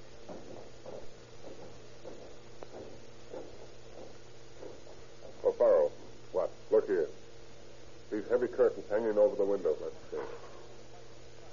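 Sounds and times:
footsteps climbing the stairs of a house: 0.0 - 6.2
low steady hum: 0.0 - 11.5
speech: 8.3 - 10.2.

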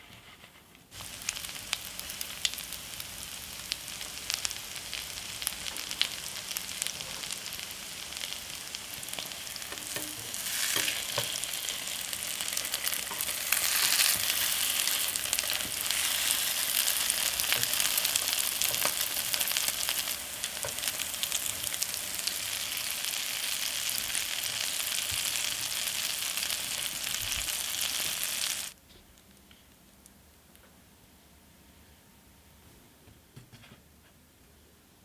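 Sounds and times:
French toast frying: 0.9 - 28.8.

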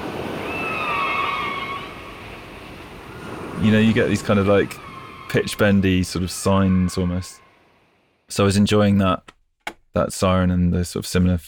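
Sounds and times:
whale song in a music intro: 0.0 - 3.5, 4.1 - 8.0
speech: 3.6 - 7.4, 8.3 - 9.4, 10.0 - 11.4.

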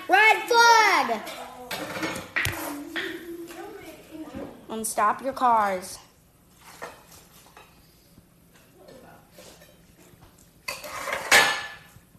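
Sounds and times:
dishes and cutlery clinking at a dinner table: 1.2 - 3.2, 8.5 - 12.0
speech: 4.8 - 6.1.

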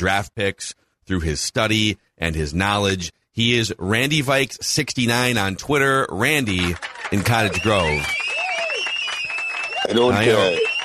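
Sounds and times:
speech: 0.0 - 8.2, 9.9 - 10.7
studio audience clapping: 6.2 - 10.8
studio audience whooping: 6.7 - 10.8.

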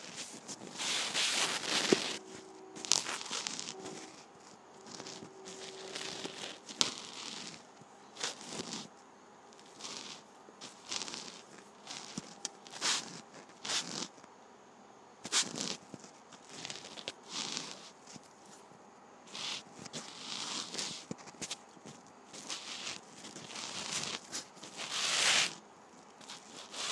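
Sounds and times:
rubbing against a surface: 0.0 - 14.3, 15.2 - 26.9
brief steady tone: 1.9 - 5.8.

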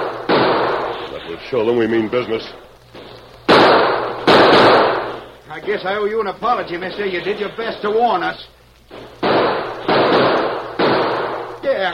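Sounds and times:
gunshots in a shootout: 0.0 - 1.1, 3.0 - 5.8, 8.9 - 11.6
speech: 1.2 - 3.1, 5.5 - 9.0, 11.6 - 11.9.

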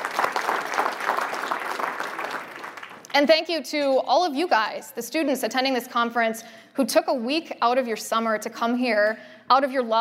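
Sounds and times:
audience applause: 0.0 - 3.1
speech: 3.1 - 9.9.

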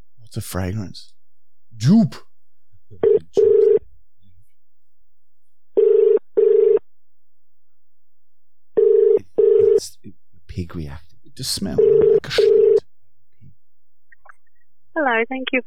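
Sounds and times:
speech: 0.3 - 1.2, 1.8 - 2.3, 2.9 - 3.5, 10.6 - 12.7, 15.0 - 15.6
telephone ringing during call transfer: 3.0 - 3.8, 5.8 - 6.8, 8.8 - 9.8, 11.8 - 12.8.

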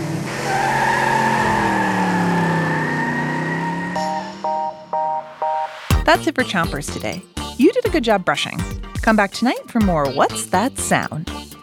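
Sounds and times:
self-driving car driving past with whine: 0.0 - 5.9
short electronic beeps: 3.9 - 6.1
speech: 6.1 - 11.3.

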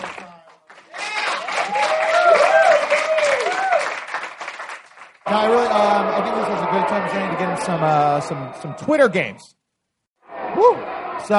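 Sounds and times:
small group clapping: 0.0 - 5.6
speech: 5.3 - 9.6, 10.5 - 11.3.

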